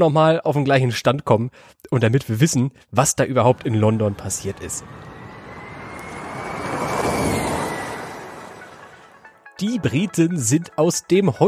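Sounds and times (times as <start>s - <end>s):
speech: 0.0s - 5.2s, 9.6s - 11.4s
car driving past: 3.3s - 9.3s
thin high whine: 3.5s - 9.3s.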